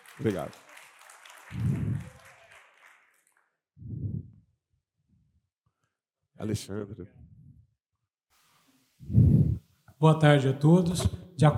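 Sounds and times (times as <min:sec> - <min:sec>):
audience applause: 0:00.0 - 0:03.6
speech: 0:00.2 - 0:00.7, 0:06.4 - 0:07.4, 0:10.0 - 0:11.5.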